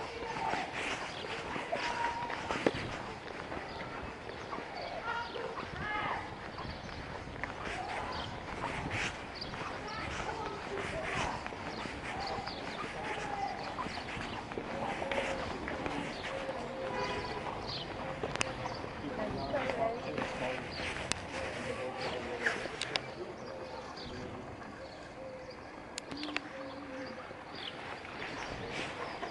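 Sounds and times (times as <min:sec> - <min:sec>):
people talking in the centre of Market Rasen: 0:00.0 - 0:27.5
birds calling: 0:00.0 - 0:29.2
footsteps: 0:00.0 - 0:29.2.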